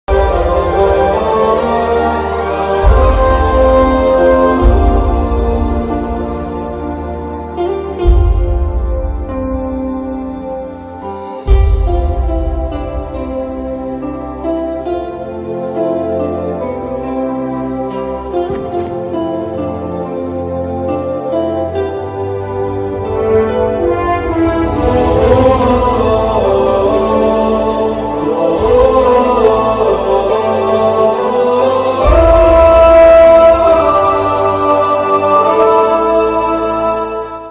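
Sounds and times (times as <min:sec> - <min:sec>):
emotional background music: 0:00.0 - 0:37.4.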